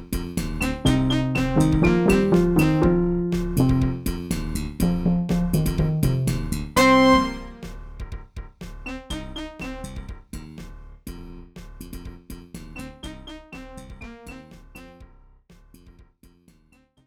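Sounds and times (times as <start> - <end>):
Roland SC-88 sound module music: 0.6 - 4.1, 4.8 - 7.8.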